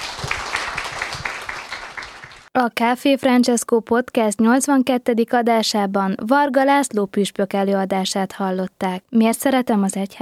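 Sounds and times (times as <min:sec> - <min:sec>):
audience applause: 0:00.0 - 0:02.5
speech: 0:02.6 - 0:10.2.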